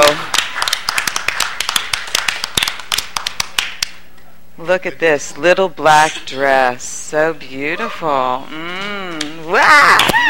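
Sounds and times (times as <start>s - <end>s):
audience applause: 0.0s - 3.9s
speech: 4.7s - 10.2s.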